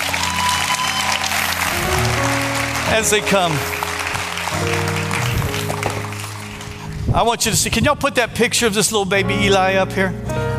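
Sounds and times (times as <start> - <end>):
audience round of applause: 0.0 - 7.1
speech: 2.9 - 3.7, 4.5 - 5.0, 7.1 - 10.4.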